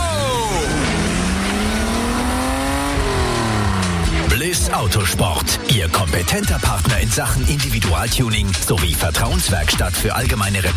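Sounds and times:
race car number 12 accelerating out of the pit lane: 0.0 - 6.0
speech: 4.7 - 10.7.

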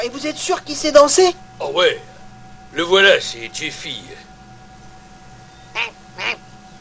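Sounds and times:
speech: 0.1 - 2.1, 2.8 - 4.3
duck quacking: 5.8 - 6.4.

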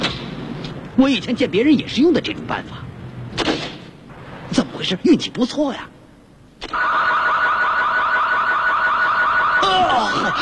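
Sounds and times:
speech: 1.0 - 2.9, 4.8 - 5.9
highly sensitive car alarm: 6.7 - 10.4.

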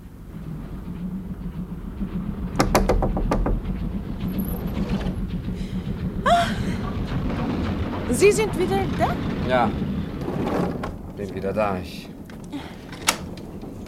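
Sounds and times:
moving train rumble: 0.0 - 13.8
knocking on a compartment door: 2.6 - 3.8
speech: 8.2 - 10.5, 11.2 - 12.1.

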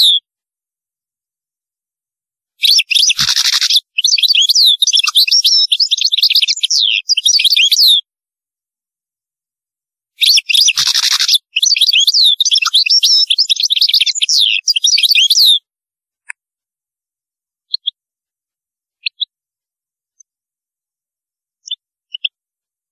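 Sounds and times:
European goldfinch song of tinkling twittering: 0.0 - 0.2, 2.6 - 8.0, 10.2 - 15.7, 17.7 - 18.0, 19.0 - 19.3, 21.6 - 22.4.

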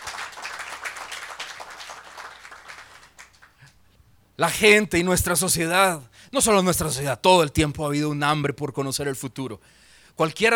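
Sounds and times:
audience applauding at a Christmas sermon: 0.0 - 3.7
speech: 4.4 - 10.5.

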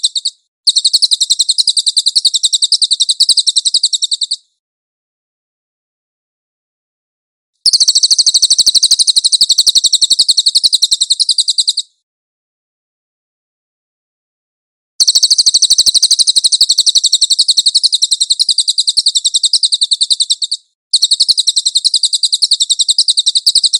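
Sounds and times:
cililin singing a high dense rattle: 0.0 - 4.5, 7.6 - 12.0, 15.0 - 23.7.

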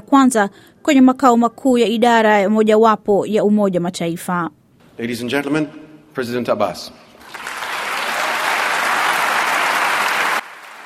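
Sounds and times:
speech: 0.1 - 7.5
applause from foreign delegates and journalists at UNESCO headquarters in Paris: 7.2 - 10.8.

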